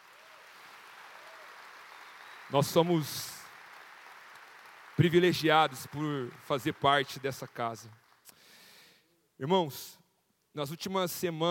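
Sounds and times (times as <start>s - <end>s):
crowd applauding: 0.0s - 8.3s
speech: 2.5s - 3.3s, 5.0s - 8.0s, 9.4s - 10.0s, 10.6s - 11.4s.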